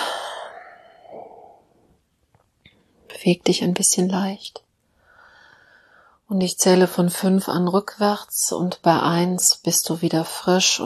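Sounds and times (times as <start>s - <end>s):
deep breathing during a guided relaxation exercise: 0.0s - 2.0s, 4.9s - 6.2s
speech: 3.2s - 4.6s, 6.3s - 10.8s.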